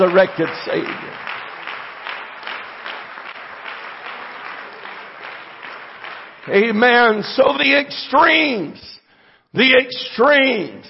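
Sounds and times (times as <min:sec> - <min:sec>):
speech: 0:00.0 - 0:01.2, 0:06.4 - 0:10.8
audience clapping: 0:00.0 - 0:07.8.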